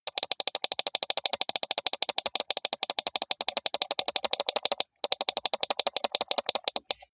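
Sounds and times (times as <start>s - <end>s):
steady computer mouse click sequence: 0.0s - 7.1s.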